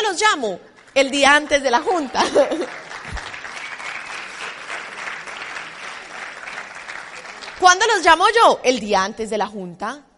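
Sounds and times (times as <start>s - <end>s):
speech: 0.1s - 2.9s, 7.6s - 10.1s
audience applause: 1.8s - 8.0s
laughter: 2.0s - 3.4s.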